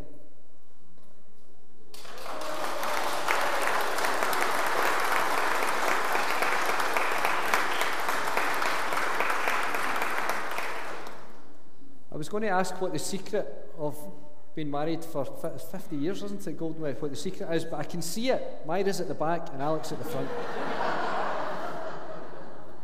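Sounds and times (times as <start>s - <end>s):
loud audience clapping: 1.9s - 11.4s
speech: 12.3s - 20.6s
laughter: 20.0s - 22.8s.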